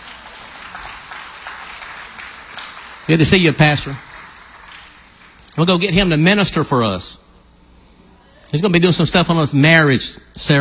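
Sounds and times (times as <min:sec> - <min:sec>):
church congregation clapping for a guest during a service: 0:00.0 - 0:06.2
speech: 0:03.1 - 0:04.1, 0:05.6 - 0:07.2, 0:08.5 - 0:10.5.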